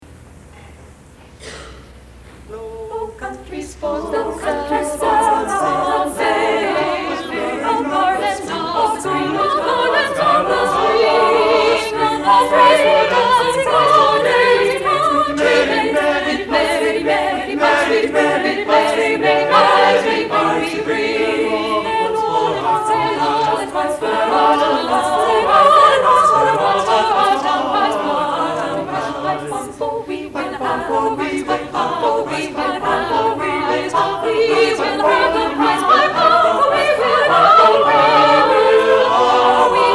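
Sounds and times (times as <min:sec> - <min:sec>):
Renaissance vocal ensemble: 0:02.3 - 0:39.9.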